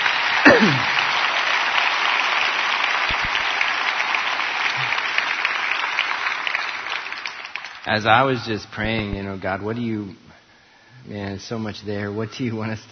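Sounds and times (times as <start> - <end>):
crowd applause: 0.0 - 9.2
speech: 0.4 - 1.0, 7.9 - 10.2, 11.1 - 12.9.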